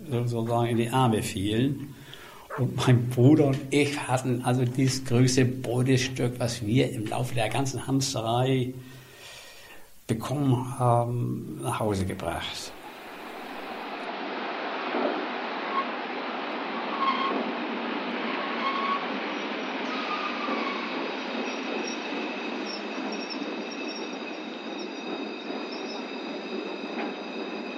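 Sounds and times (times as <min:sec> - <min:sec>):
trains at the barrier of Bremen main station: 0:00.0 - 0:08.8, 0:09.9 - 0:27.7
speech: 0:00.1 - 0:09.0, 0:10.1 - 0:12.8
high squealing train wheels: 0:15.6 - 0:16.0, 0:16.7 - 0:27.7.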